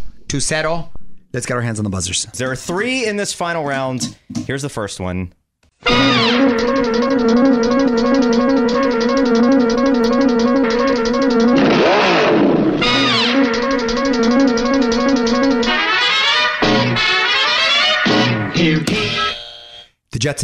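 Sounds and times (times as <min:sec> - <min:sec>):
speech: 0:00.3 - 0:11.0, 0:20.2 - 0:20.4
loud brassy classic cartoon theme tune: 0:05.8 - 0:19.9
engine revving: 0:05.9 - 0:18.8.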